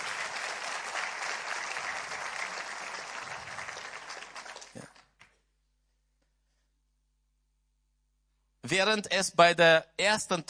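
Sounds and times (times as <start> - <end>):
audience applause: 0.0 - 5.2
speech: 8.7 - 10.4.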